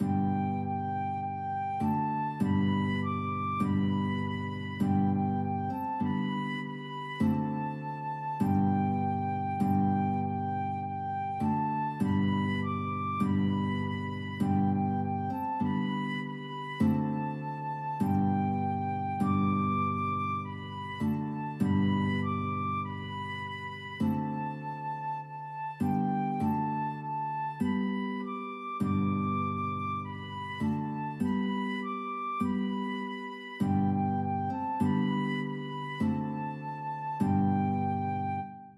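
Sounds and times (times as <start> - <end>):
flute: 0.0 - 38.7
guitar: 0.0 - 38.7.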